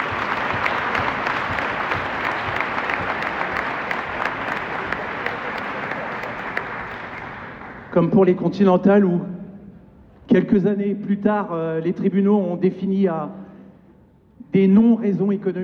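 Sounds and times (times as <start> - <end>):
audience applause at a talk about workers fighting a factory closure: 0.0 - 8.0
speech: 8.0 - 9.3, 10.3 - 13.4, 14.5 - 15.6.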